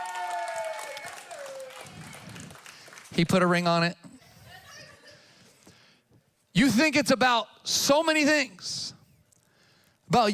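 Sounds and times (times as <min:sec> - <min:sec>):
audience applause for an engagement announcement: 0:00.0 - 0:03.4
speech: 0:03.2 - 0:04.0, 0:06.7 - 0:08.8, 0:10.1 - 0:10.3.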